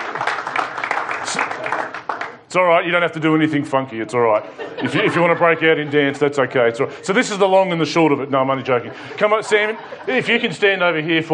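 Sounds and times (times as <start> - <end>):
audience clapping: 0.0 - 2.5
speech: 2.5 - 11.3
laughter: 4.0 - 11.1.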